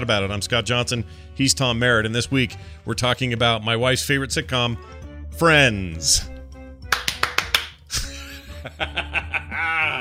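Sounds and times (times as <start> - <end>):
speech: 0.0 - 6.3
rhythmic hand claps in TV theme song: 6.8 - 8.0
laughter: 7.9 - 10.0.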